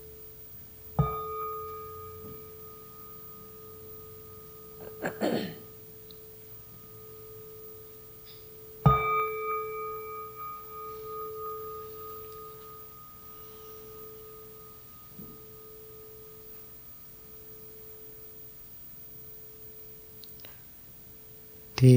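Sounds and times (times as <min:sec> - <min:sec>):
meditation bell: 0:00.0 - 0:21.9.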